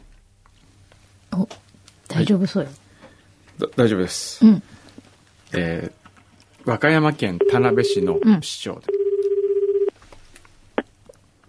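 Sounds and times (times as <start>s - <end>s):
speech: 2.2s - 2.8s, 3.6s - 4.8s, 5.5s - 6.0s, 6.6s - 9.0s
landline telephone ringing: 7.4s - 8.3s, 8.9s - 9.9s.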